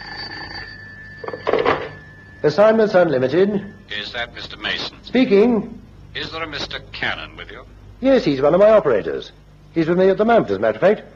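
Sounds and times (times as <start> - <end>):
telephone bell ringing: 0.0 - 4.5
speech: 2.4 - 11.1.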